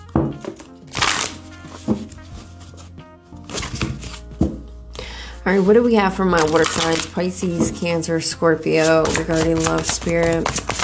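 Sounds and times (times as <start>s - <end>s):
shuffling a deck of tarot cards: 0.0s - 4.3s, 6.3s - 7.7s, 8.7s - 10.8s
speech: 5.5s - 10.7s.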